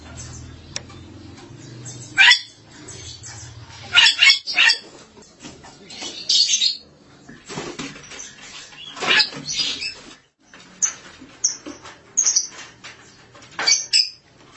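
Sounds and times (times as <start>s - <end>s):
starling squawking: 1.8s - 4.9s, 8.8s - 10.0s.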